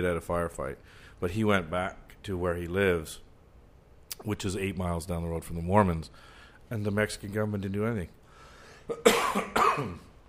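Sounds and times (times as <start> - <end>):
speech: 0.0 - 3.3, 4.2 - 8.2, 8.9 - 10.1
man coughing and clearing his throat: 8.8 - 10.2.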